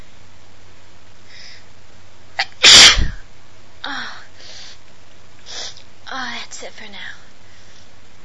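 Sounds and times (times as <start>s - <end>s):
woman sneezing loudly like a hurricane: 2.4s - 3.2s.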